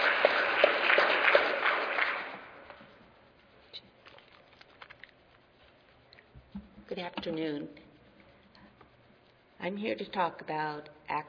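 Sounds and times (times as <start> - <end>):
audience applause welcoming a speaker: 0.0 - 2.7
speech: 7.0 - 7.8, 9.6 - 11.2.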